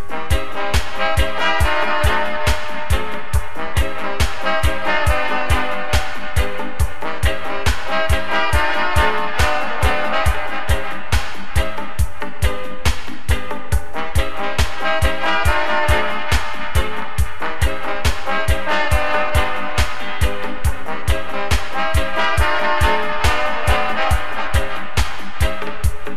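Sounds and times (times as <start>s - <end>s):
dub horns firing: 0.1s - 11.9s, 14.0s - 25.9s.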